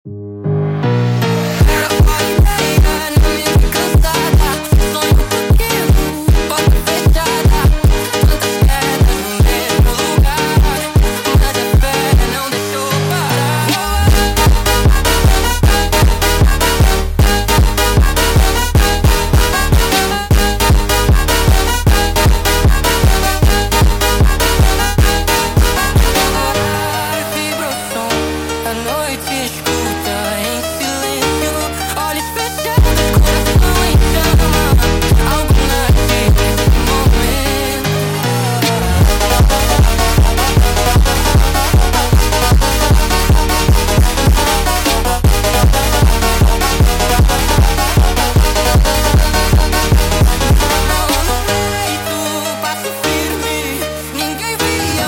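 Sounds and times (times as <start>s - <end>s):
sped up montagem music: 0.2s - 55.0s.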